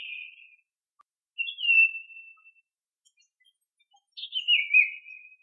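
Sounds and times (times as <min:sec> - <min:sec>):
iora song: 0:01.4 - 0:02.7, 0:04.2 - 0:05.4.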